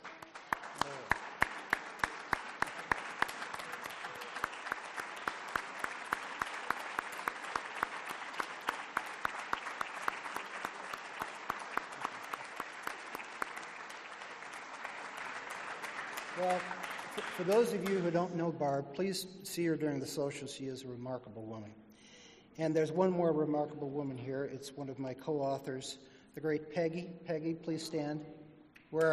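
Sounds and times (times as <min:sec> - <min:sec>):
audience applause: 0:00.0 - 0:18.2
speech: 0:16.4 - 0:21.8, 0:22.6 - 0:29.1.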